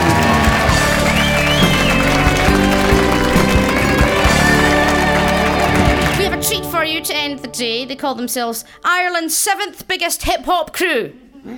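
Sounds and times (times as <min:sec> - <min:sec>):
audience applause: 0:00.0 - 0:06.8
speech: 0:07.0 - 0:11.5.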